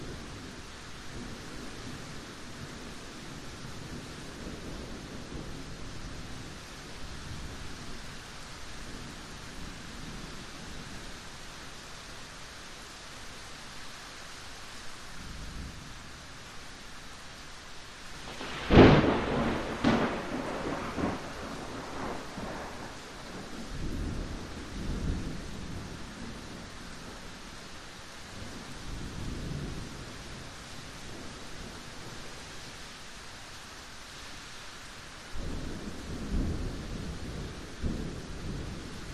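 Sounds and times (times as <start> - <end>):
light rain in a yard: 0.0 - 39.1
thunder cracks very close by: 18.2 - 23.5.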